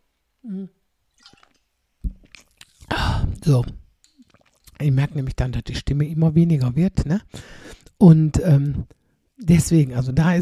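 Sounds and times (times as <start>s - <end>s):
speech: 0.4s - 0.8s, 3.5s - 3.8s, 4.8s - 10.4s
person sipping a drink and gulping: 0.6s - 4.9s.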